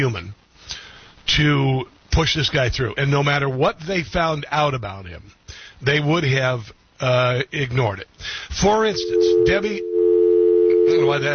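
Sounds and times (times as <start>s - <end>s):
speech: 0.0s - 0.4s, 1.3s - 9.9s, 10.9s - 11.3s
cell phone steady electronic tone: 9.0s - 11.3s.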